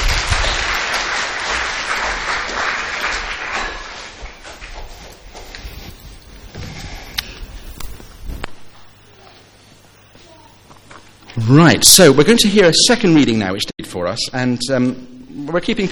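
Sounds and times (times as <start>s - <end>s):
audience applause: 0.0s - 4.5s
speech: 11.5s - 15.9s.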